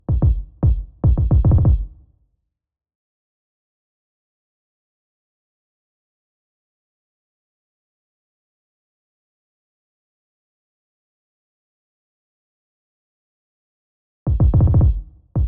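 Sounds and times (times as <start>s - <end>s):
kick drum: 0.0s - 2.0s, 14.3s - 15.4s.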